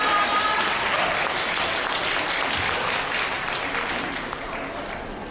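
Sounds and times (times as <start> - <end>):
warm audience applause: 0.0 - 5.2.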